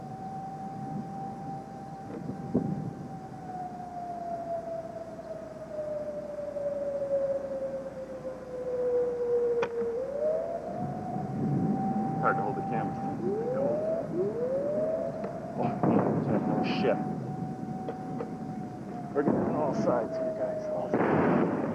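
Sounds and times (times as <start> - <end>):
air-raid siren wailing: 0.0 - 21.7
missile explosions near Riyadh: 15.6 - 16.9, 19.2 - 20.1, 20.7 - 21.7.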